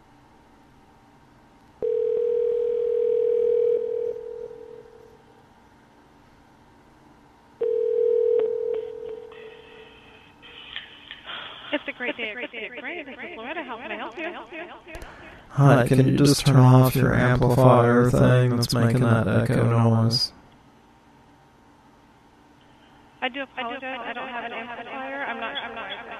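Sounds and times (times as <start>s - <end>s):
telephone tone: 1.8s - 5.2s, 7.6s - 10.2s
laughter: 10.4s - 15.6s, 24.0s - 26.1s
speech: 12.0s - 20.4s.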